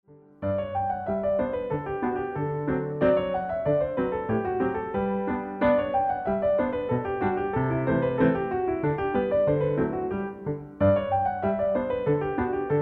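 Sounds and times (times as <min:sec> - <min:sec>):
ballet class music for medium jete: 0:00.5 - 0:12.7.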